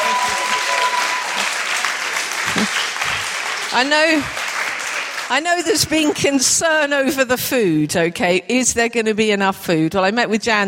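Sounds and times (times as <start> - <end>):
applause: 0.0 - 6.6
speech: 3.7 - 4.4, 5.3 - 10.6.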